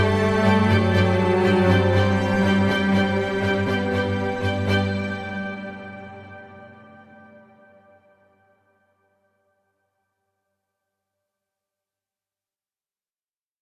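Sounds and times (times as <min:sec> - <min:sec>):
ambient music: 0:00.0 - 0:09.0.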